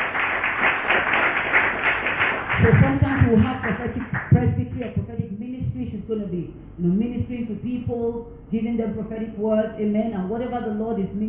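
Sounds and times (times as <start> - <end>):
congregation clapping in a church service: 0.0 - 5.0
speech: 6.1 - 11.2.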